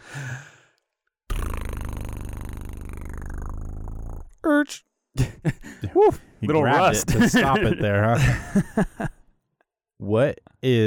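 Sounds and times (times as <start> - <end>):
short breathy sigh: 0.0 - 0.8
speech: 4.5 - 9.2, 10.0 - 10.8
laughter: 5.2 - 9.2.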